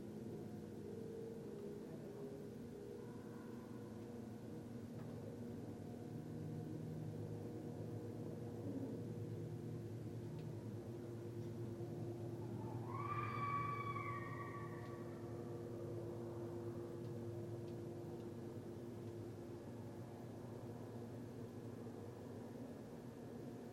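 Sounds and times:
low hum: 0:00.0 - 0:23.6
red fox call: 0:12.6 - 0:15.1.

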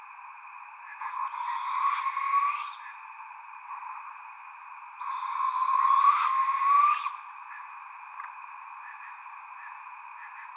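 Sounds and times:
Barred Owl calling: 0:00.9 - 0:03.0, 0:05.0 - 0:07.7.

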